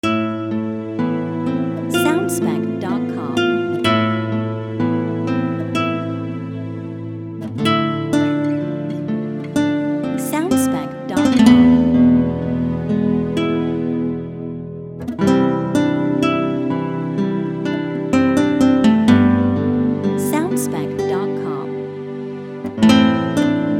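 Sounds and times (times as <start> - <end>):
guitar: 0.0 - 23.7.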